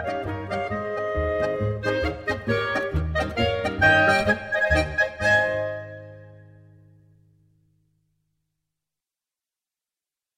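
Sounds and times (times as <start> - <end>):
polka music: 0.0 - 6.6.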